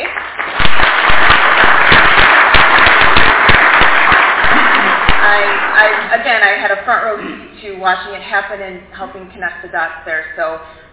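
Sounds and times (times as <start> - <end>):
audience applause: 0.0 - 6.2
speech: 7.1 - 10.8.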